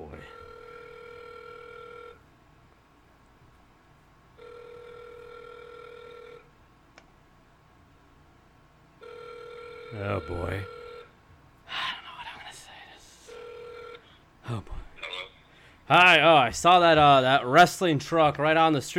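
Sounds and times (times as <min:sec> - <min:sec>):
ringback tone of an outgoing call from a burner phone: 0:00.2 - 0:02.2, 0:04.4 - 0:06.5, 0:09.0 - 0:11.1, 0:13.3 - 0:14.0
speech: 0:10.0 - 0:10.8, 0:15.9 - 0:18.9.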